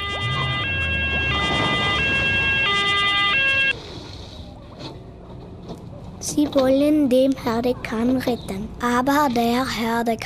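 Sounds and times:
fire engine siren approaching: 0.0s - 3.8s
speech: 6.3s - 10.2s.

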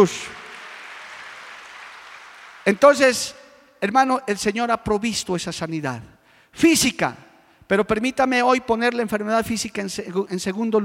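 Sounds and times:
speech: 0.0s - 0.4s, 2.6s - 10.8s
audience applauding: 0.0s - 3.1s.

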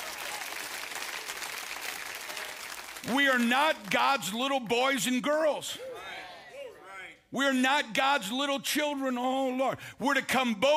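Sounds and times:
audience applauding: 0.0s - 4.0s
speech: 3.0s - 5.9s, 7.3s - 10.7s.

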